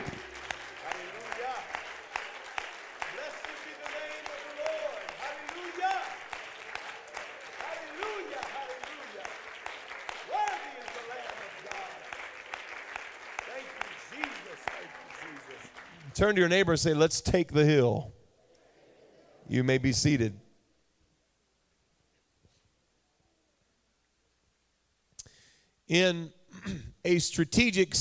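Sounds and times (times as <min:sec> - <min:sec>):
crowd shouting praise: 0:00.0 - 0:09.4, 0:10.2 - 0:12.1
audience clapping: 0:00.0 - 0:16.8
speech: 0:16.2 - 0:18.2, 0:19.5 - 0:20.4, 0:25.9 - 0:26.4, 0:27.1 - 0:27.9.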